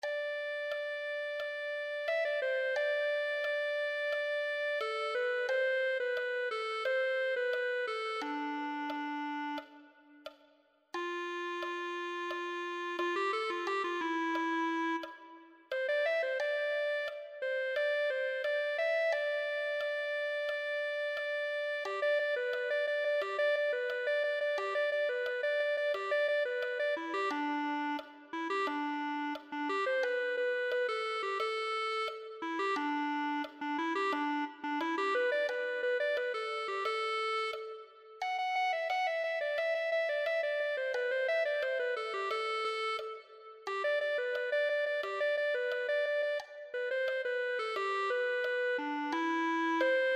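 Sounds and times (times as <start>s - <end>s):
clarinet: 0.0s - 50.1s.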